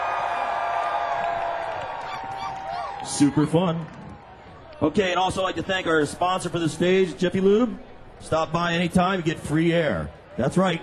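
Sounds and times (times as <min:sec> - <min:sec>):
crowd screaming on cue: 0:00.0 - 0:05.2
speech: 0:03.1 - 0:04.0, 0:04.8 - 0:10.8.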